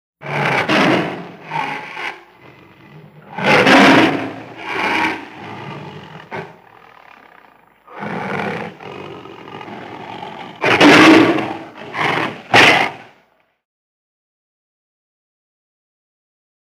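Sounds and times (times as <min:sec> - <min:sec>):
tiger growling: 0:00.2 - 0:13.3.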